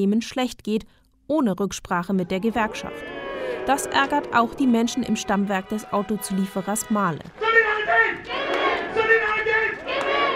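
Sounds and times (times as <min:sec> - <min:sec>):
speech: 0:00.0 - 0:08.5
large crowd of workers shouting and chanting at a union rally: 0:02.2 - 0:10.3.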